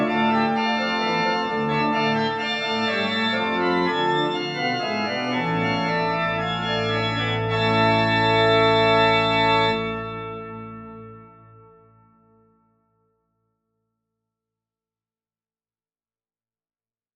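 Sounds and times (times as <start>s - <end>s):
Dexibell church organ: 0.0s - 12.9s.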